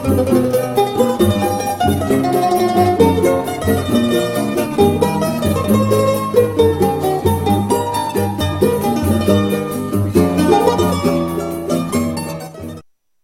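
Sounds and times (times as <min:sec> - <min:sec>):
mandolin: 0:00.0 - 0:12.9.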